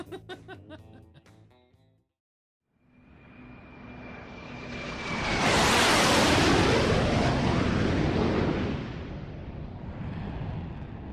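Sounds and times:
laughter: 0:00.0 - 0:01.4
low flying jet aircraft: 0:02.7 - 0:11.1.

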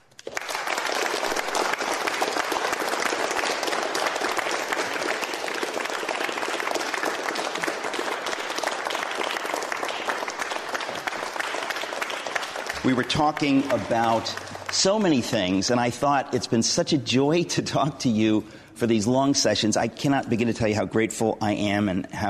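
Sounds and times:
audience at a talk event applauding to welcome a guest speaker: 0:00.0 - 0:16.5
speech: 0:12.9 - 0:22.2.

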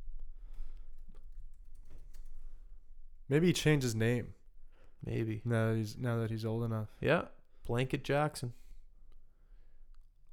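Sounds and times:
typing on a computer keyboard: 0:01.0 - 0:02.4
low hiss: 0:01.6 - 0:10.3
speech: 0:03.3 - 0:04.4, 0:05.0 - 0:08.6.

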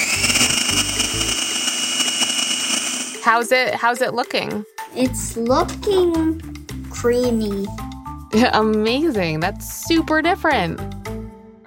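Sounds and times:
food processor running: 0:00.0 - 0:03.2
speech: 0:03.2 - 0:11.0.

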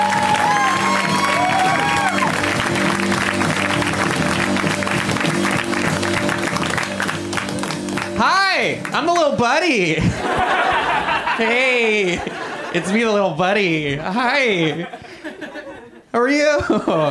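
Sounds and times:
comedy show audience whoops and cheering: 0:00.0 - 0:02.5
comedy show audience clapping as a comedian takes the stage: 0:00.0 - 0:09.5
speech: 0:08.9 - 0:10.6, 0:11.4 - 0:15.1, 0:16.2 - 0:17.1
laughter: 0:09.8 - 0:13.3, 0:14.0 - 0:17.1.

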